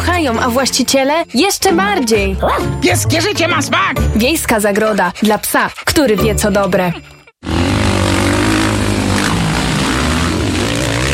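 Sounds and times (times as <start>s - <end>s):
speech: 0.2s - 7.6s
speedway motorcycles racing: 7.4s - 11.1s.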